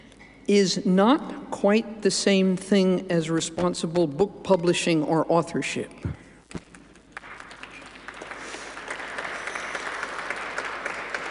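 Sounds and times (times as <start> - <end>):
speech: 0.5 - 6.6
audience applause: 7.1 - 11.2.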